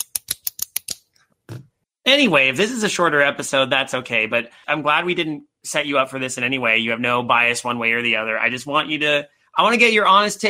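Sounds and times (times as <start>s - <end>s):
clicky pen clicking: 0.0s - 1.0s
speech: 2.1s - 10.4s.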